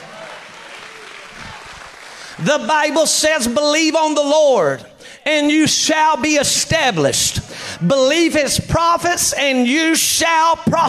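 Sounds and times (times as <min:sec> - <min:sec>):
audience hand clapping: 0:00.0 - 0:02.7
speech: 0:02.4 - 0:10.8.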